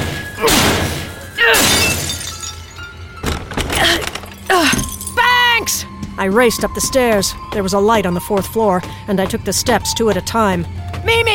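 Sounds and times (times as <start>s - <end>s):
window glass smashed with a garbage can: 0.0s - 5.3s
speech: 6.2s - 11.3s.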